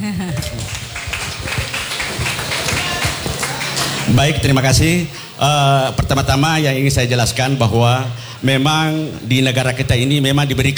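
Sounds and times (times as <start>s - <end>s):
speech: 0.0s - 0.8s, 4.1s - 10.7s
audience clapping hands: 0.0s - 8.0s
laughter: 0.0s - 10.4s.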